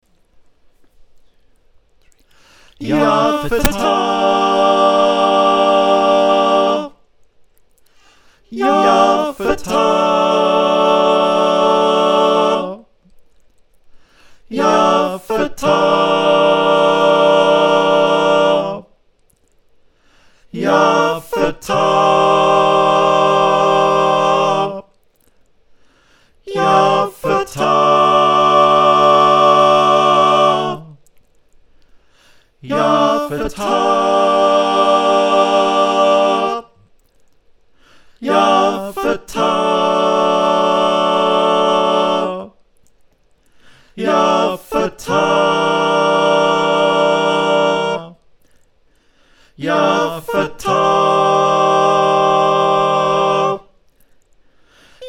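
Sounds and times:
SATB four-part choir singing: 2.7 - 7.1, 8.4 - 13.0, 14.3 - 19.0, 20.4 - 25.0, 26.4 - 31.0, 32.5 - 36.8, 38.2 - 42.6, 43.8 - 48.2, 49.5 - 53.8.

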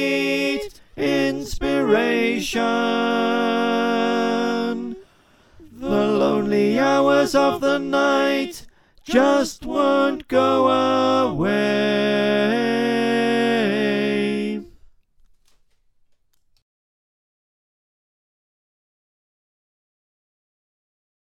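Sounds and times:
tenor voice: 0.0 - 5.0, 5.6 - 14.7
choir singing: 0.0 - 14.8.

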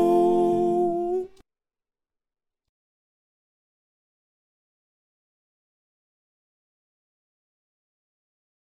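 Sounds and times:
choir with soprano: 0.0 - 1.4.

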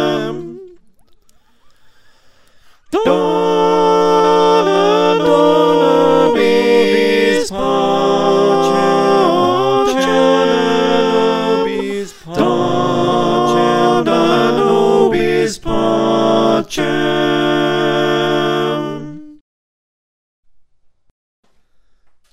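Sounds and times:
SATB four-part choir singing: 0.0 - 0.8, 2.9 - 19.4.

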